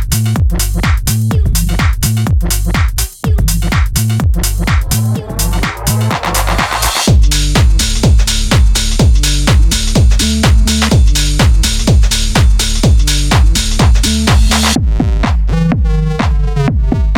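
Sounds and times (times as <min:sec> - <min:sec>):
tech house music: 0:00.0 - 0:17.1.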